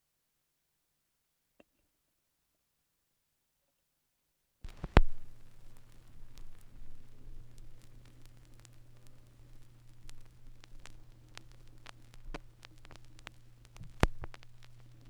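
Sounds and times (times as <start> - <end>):
vinyl record noise: 4.7 - 15.0.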